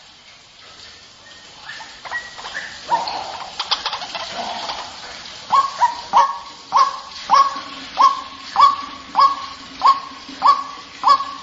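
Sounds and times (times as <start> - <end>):
white-breasted waterhen clipped rising notes and harsh croaking calls used as a lure: 1.2 - 11.4.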